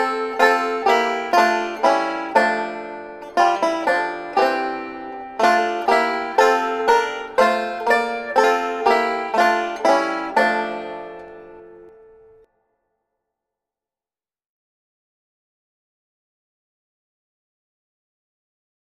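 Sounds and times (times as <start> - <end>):
banjo playing a Christmas carol: 0.0 - 12.5.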